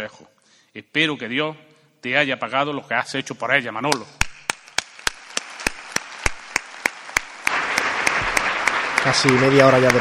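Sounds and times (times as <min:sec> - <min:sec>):
speech: 0:00.0 - 0:04.2, 0:09.0 - 0:09.9
theatre audience applause: 0:04.5 - 0:09.9.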